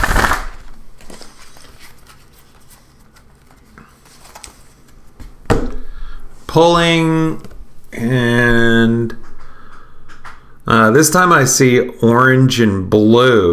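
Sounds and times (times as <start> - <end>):
tarot cards being shuffled: 0.0 - 5.4
speech: 6.6 - 9.2, 10.7 - 13.5.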